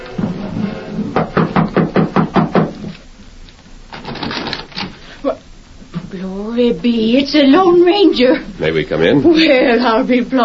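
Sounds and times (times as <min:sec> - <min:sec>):
knocking on a wooden door: 0:01.2 - 0:02.8
speech: 0:06.6 - 0:10.4.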